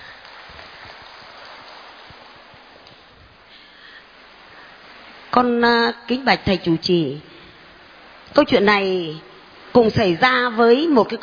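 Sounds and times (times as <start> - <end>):
audience applause: 0.0 - 2.9
speech: 5.4 - 7.3, 8.4 - 11.2.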